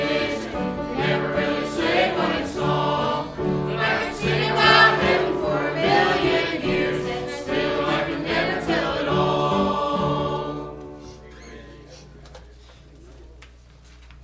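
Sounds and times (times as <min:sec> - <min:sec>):
youth choir singing: 0:00.0 - 0:11.0.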